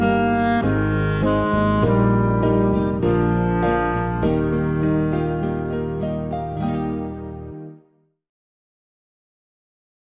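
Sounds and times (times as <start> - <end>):
clarinet: 0.0 - 7.9.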